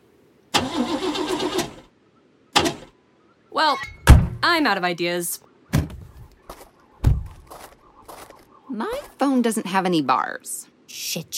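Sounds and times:
car engine cranking during restart: 0:00.5 - 0:01.9
speech: 0:03.6 - 0:05.5, 0:08.7 - 0:11.3.

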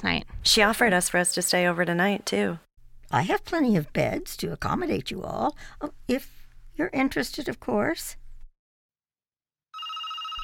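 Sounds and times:
speech: 0:00.0 - 0:08.2
telephone bell ringing: 0:09.7 - 0:10.4.

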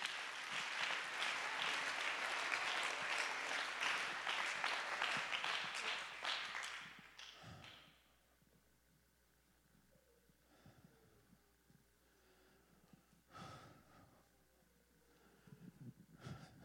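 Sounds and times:
audience clapping hands: 0:00.0 - 0:07.8.

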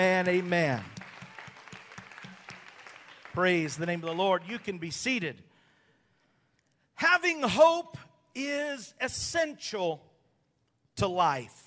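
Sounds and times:
speech: 0:00.0 - 0:01.0, 0:03.4 - 0:05.5, 0:07.0 - 0:10.1, 0:11.0 - 0:11.6
audience hand clapping: 0:00.0 - 0:05.2.

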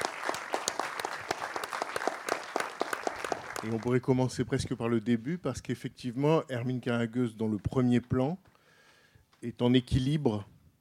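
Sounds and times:
audience applause: 0:00.0 - 0:04.2
speech: 0:03.6 - 0:08.5, 0:09.4 - 0:10.5.

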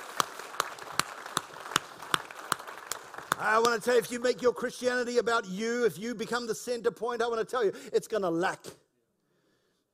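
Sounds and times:
audience clapping in praise: 0:00.0 - 0:04.4
speech: 0:03.4 - 0:08.8.

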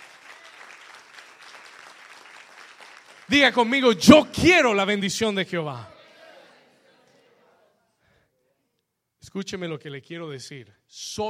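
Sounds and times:
loud applause from audience: 0:00.0 - 0:03.8
speech: 0:03.3 - 0:05.9, 0:09.3 - 0:11.2.

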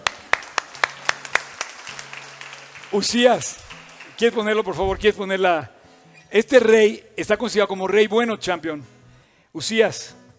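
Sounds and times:
sparse clapping: 0:00.0 - 0:04.9
speech: 0:02.9 - 0:03.6, 0:04.2 - 0:10.2.

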